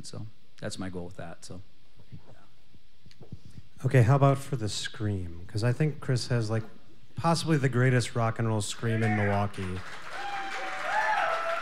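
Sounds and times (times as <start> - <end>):
speech: 0.0 - 2.4, 3.2 - 10.3
audience applause: 8.7 - 11.5.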